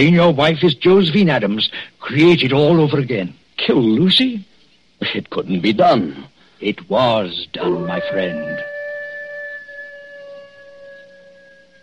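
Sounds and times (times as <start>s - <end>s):
speech: 0.0s - 8.7s
dog howling: 7.6s - 11.8s.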